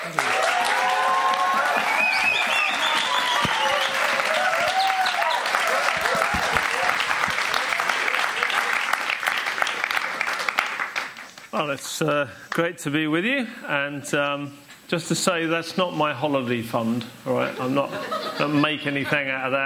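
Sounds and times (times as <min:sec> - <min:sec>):
audience applause welcoming a speaker: 0:00.0 - 0:11.5
speech: 0:11.7 - 0:19.6
laughter: 0:17.4 - 0:18.8.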